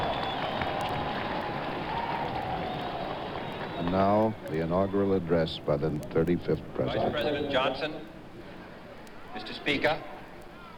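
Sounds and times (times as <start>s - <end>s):
large crowd cheering and applauding: 0.0s - 4.5s
speech: 3.8s - 8.1s, 9.4s - 10.1s.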